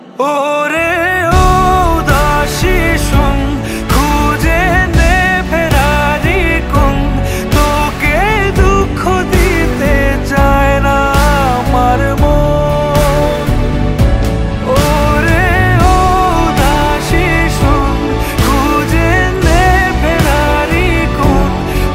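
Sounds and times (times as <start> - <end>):
Bengali song: 0.0 - 21.9.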